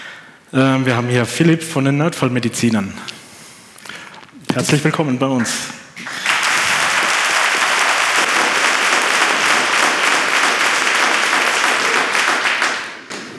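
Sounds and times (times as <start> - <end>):
speech: 0.5 - 3.1, 4.6 - 5.8
live audience applause: 6.0 - 13.3.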